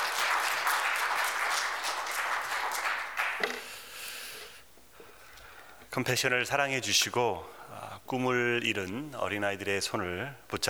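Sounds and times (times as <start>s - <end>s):
audience applause welcoming a speaker: 0.0s - 3.8s
speech: 6.0s - 10.6s.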